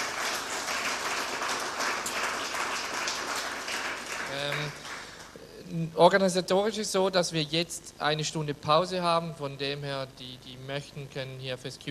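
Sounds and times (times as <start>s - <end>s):
audience applause: 0.0s - 5.4s
speech: 5.7s - 11.8s.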